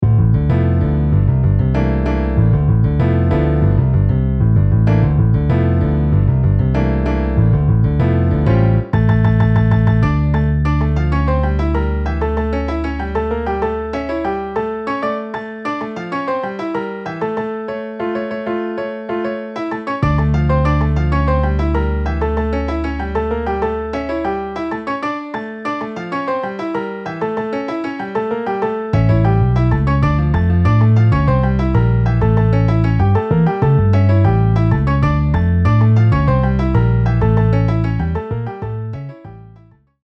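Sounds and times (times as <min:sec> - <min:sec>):
MIDI piano and bass: 0:00.0 - 0:40.0.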